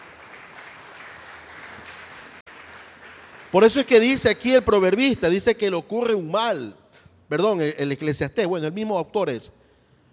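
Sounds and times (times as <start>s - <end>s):
audience applauding: 0.0s - 4.1s
speech: 3.5s - 9.6s.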